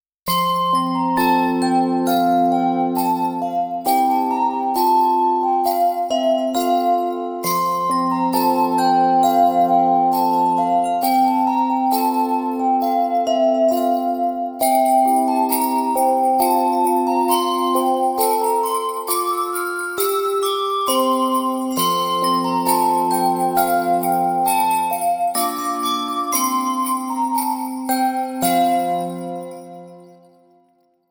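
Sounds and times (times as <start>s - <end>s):
festive bells playing a christmas carol: 0.3s - 31.0s.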